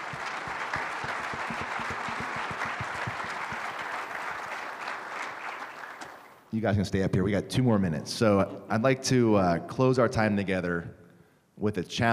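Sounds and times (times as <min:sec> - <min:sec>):
audience applause: 0:00.0 - 0:06.4
speech: 0:06.5 - 0:11.0, 0:11.6 - 0:12.1.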